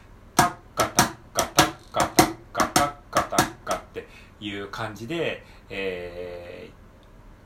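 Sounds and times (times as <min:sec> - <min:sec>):
mini cajon played by hand in a shuffle rhythm: 0:00.4 - 0:04.0
speech: 0:04.4 - 0:06.8.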